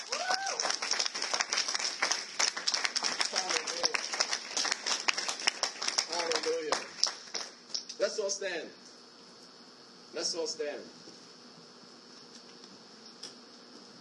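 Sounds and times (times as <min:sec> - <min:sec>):
audience applause: 0:00.0 - 0:07.6
speech: 0:08.4 - 0:08.8, 0:10.2 - 0:11.1.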